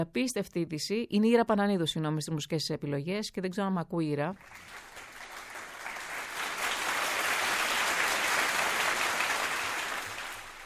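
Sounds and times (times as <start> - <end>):
speech: 0.0 - 4.8
crowd applause: 4.4 - 10.6.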